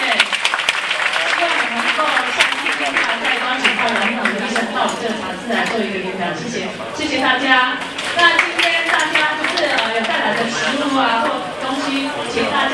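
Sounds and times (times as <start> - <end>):
audience applause: 0.0 - 4.8, 7.8 - 10.9
speech: 3.6 - 12.7.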